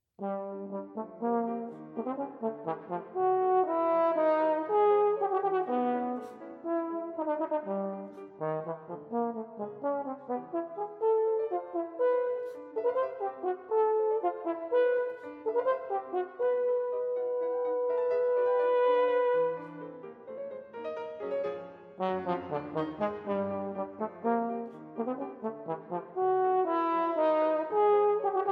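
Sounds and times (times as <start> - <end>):
oboe and piano sonata: 0.2 - 28.5.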